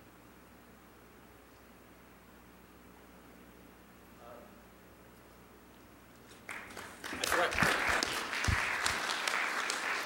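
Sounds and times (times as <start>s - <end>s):
audience applause: 6.5s - 10.0s.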